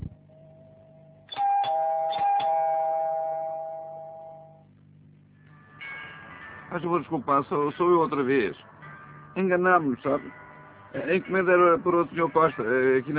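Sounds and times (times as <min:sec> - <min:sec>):
steady low hum: 0:00.0 - 0:11.2
front-door doorbell electronic chimes: 0:01.3 - 0:04.6
speech: 0:06.7 - 0:08.7, 0:09.4 - 0:13.1.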